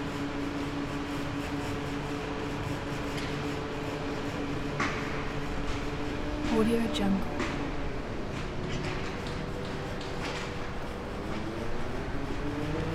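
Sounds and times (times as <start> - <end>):
construction site industrial sounds: 0.0 - 12.9
city traffic in background: 4.4 - 12.9.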